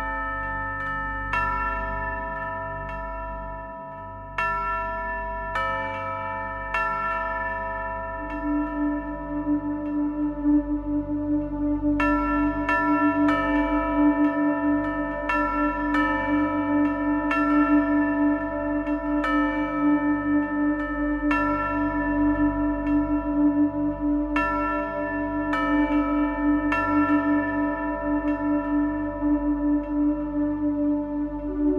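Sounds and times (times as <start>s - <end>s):
bells drone: 0.0s - 31.7s.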